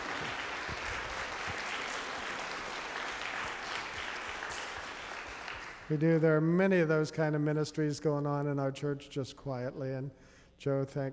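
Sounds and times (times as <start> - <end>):
audience applause: 0.0 - 6.0
speech: 5.9 - 11.1.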